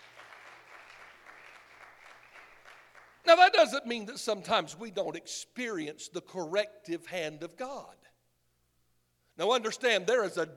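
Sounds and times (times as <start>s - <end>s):
audience clapping: 0.0s - 3.5s
speech: 3.3s - 8.1s, 9.4s - 10.5s.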